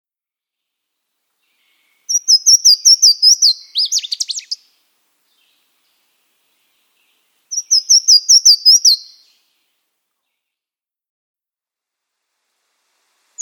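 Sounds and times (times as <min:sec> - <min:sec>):
Louisiana waterthrush singing slurred whistles and descending chippering: 0:01.6 - 0:04.7, 0:07.5 - 0:09.5.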